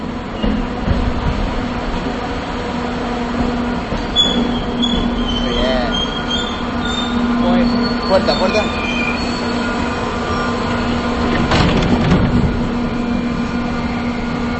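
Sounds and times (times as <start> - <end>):
train rumbling on rails: 0.0 - 14.5
high-pitched wheel squeals: 4.0 - 11.4.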